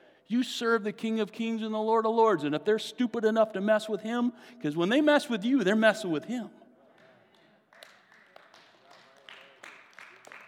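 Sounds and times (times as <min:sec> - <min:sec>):
speech: 0:00.3 - 0:06.6
weak clapping: 0:06.9 - 0:10.4.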